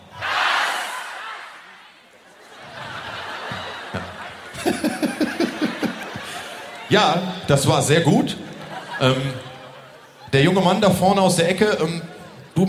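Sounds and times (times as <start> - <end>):
crowd shouting a single word together: 0.0 - 2.0
crowd laughing and murmuring: 1.0 - 12.6
speech: 6.9 - 8.4, 9.0 - 9.5, 10.3 - 12.6.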